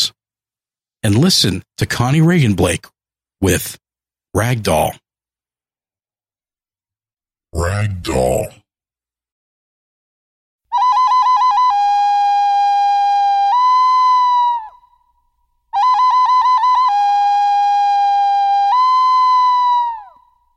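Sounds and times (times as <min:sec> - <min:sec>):
speech: 0:01.0 - 0:05.0, 0:07.5 - 0:08.6
whistled imitation of a bird call: 0:10.7 - 0:15.0, 0:15.8 - 0:20.4.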